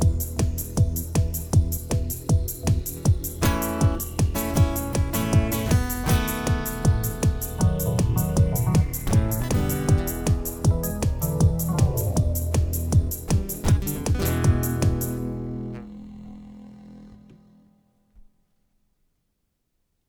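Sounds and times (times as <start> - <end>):
blues music: 0.0 - 15.9.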